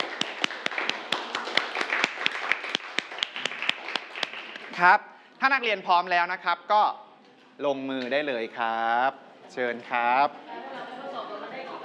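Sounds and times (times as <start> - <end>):
students clapping: 0.0 - 4.9
speech: 4.8 - 7.0, 7.6 - 10.4.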